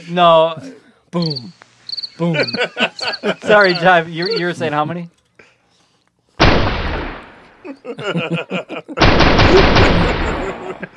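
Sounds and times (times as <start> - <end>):
speech: 0.0 - 1.6, 2.2 - 5.2, 7.8 - 10.9
laughter: 2.2 - 4.7, 7.6 - 10.9
machine gun fire in a video game: 6.4 - 7.5, 9.0 - 10.8.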